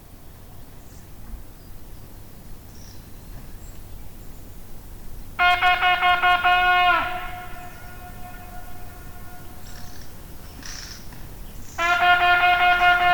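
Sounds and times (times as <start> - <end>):
hunting horn note echoing in the mountains: 5.4 - 10.0, 11.8 - 13.1.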